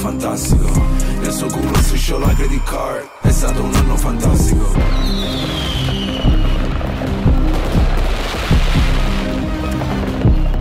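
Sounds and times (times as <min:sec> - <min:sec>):
speech: 0:00.1 - 0:06.0
Maradona bomb firecrackers exploding: 0:04.9 - 0:10.5.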